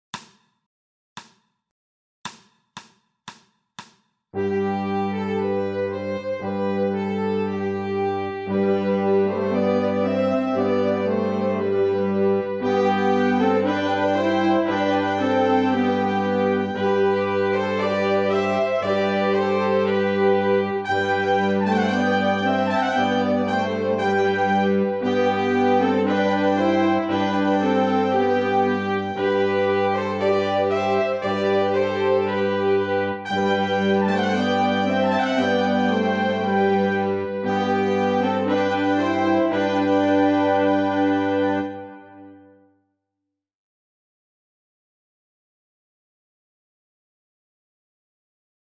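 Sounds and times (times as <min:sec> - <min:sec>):
canon accompaniment only: 0:04.4 - 0:42.5.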